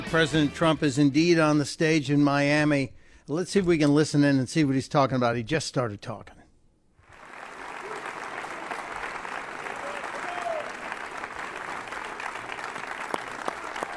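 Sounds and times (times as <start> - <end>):
speech: 0.1 - 6.4
audience applauding at a rally: 7.0 - 13.9.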